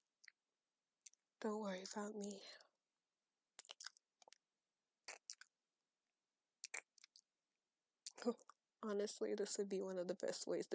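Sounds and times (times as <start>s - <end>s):
speech: 1.4s - 2.6s, 8.2s - 10.7s
chewing soft food: 3.6s - 4.4s, 5.1s - 5.6s, 6.6s - 7.3s.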